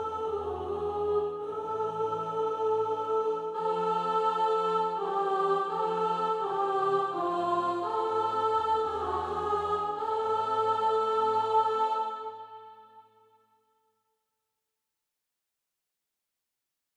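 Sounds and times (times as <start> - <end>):
soprano singing SATB practice music: 0.0 - 12.9.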